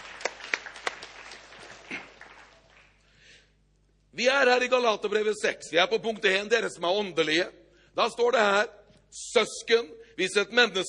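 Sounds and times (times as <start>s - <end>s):
audience applause: 0.0s - 3.0s
speech: 4.2s - 10.8s.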